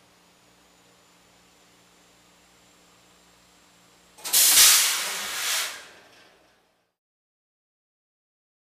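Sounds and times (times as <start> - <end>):
steam press bursts: 4.2 - 6.0.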